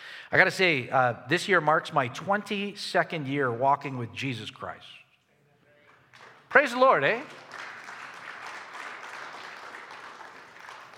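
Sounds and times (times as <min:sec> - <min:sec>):
speech: 0:00.3 - 0:05.0, 0:06.5 - 0:07.4
audience clapping: 0:05.9 - 0:10.9.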